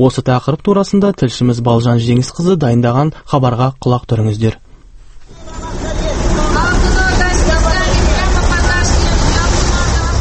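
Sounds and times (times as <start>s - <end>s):
speech: 0.0s - 4.6s
Chinese buses idling and passing at a bus stop: 5.2s - 10.2s
traffic noise at the Tole bi and Furmanov intersection: 5.2s - 10.2s.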